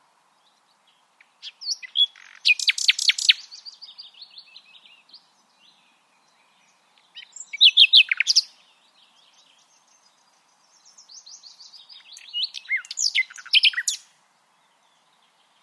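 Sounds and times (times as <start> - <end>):
Common nightingale song: 1.2 - 8.6, 9.2 - 14.1.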